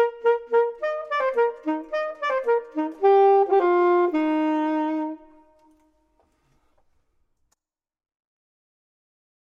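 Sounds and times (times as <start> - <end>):
clarinet: 0.0 - 6.1
saxophone: 0.0 - 6.3.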